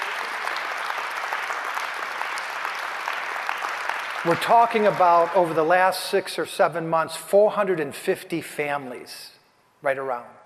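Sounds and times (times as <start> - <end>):
audience applause: 0.0 - 5.6
speech: 4.2 - 10.4.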